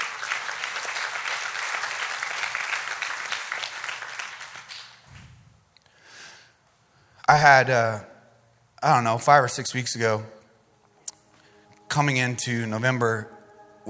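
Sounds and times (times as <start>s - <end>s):
crowd clapping: 0.0s - 5.3s
speech: 7.3s - 8.1s, 8.8s - 10.4s, 11.9s - 13.8s.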